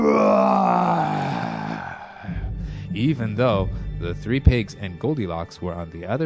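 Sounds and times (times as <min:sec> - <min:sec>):
person imitating a wolf roar: 0:00.0 - 0:02.3
speech: 0:03.0 - 0:06.2.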